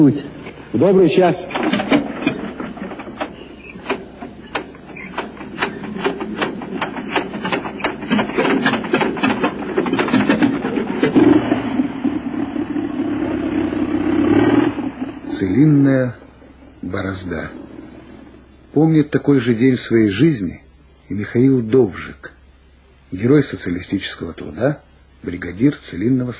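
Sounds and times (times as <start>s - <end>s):
speech: 0.0s - 1.7s, 15.6s - 16.2s, 16.8s - 17.8s, 18.8s - 22.4s, 23.1s - 26.3s
farm vehicle engine starting and driving off across a field: 0.0s - 18.6s.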